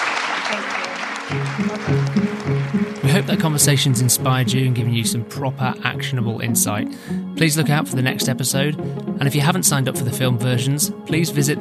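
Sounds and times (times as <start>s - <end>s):
audience applause: 0.0s - 4.6s
speech: 0.5s - 2.1s, 3.2s - 11.5s.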